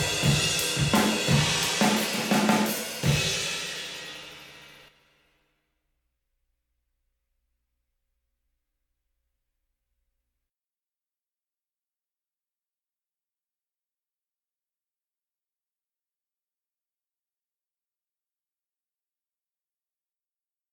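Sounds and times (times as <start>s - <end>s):
drums: 0.0s - 5.0s.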